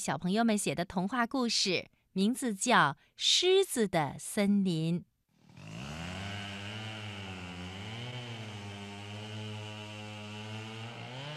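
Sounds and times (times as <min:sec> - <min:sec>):
speech: 0:00.0 - 0:05.1
chainsaw cutting tree bark: 0:05.4 - 0:11.3.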